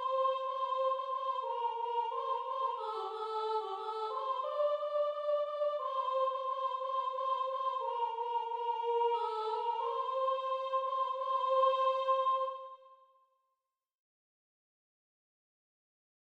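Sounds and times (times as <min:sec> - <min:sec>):
soprano singing: 0:00.0 - 0:12.8.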